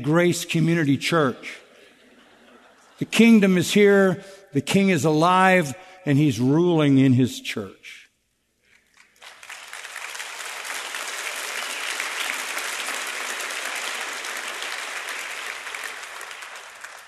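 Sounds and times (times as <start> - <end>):
speech: 0.0 - 1.6, 3.0 - 8.0
laughter: 1.7 - 3.1
large crowd applauding: 8.9 - 17.0.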